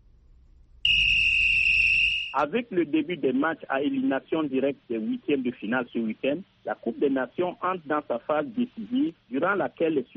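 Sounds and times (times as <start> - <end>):
whistle blow: 0.8 - 2.4
speech: 2.4 - 10.1.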